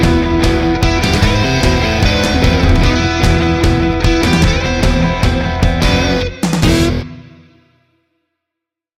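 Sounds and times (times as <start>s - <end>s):
tribal rock music: 0.0s - 7.0s.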